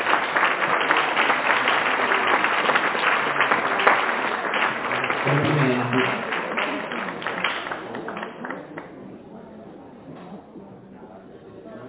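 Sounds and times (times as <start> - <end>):
audience applause: 0.0 - 8.9
speech: 5.3 - 6.3.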